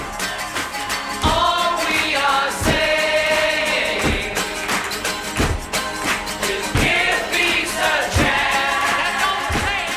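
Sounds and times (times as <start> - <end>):
strong evenly spaced percussive beats: 0.0 - 9.9
crowd-like chorus: 1.2 - 5.6, 6.4 - 9.9
sung voices in a song recorded in a Montreal hotel room: 1.2 - 9.9.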